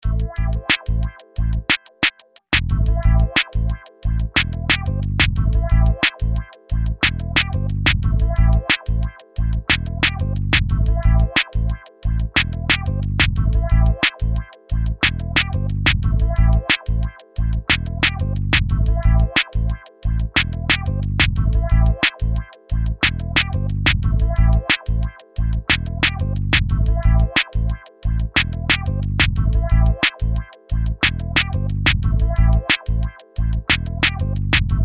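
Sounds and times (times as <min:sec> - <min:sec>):
music beat: 0:00.0 - 0:34.8.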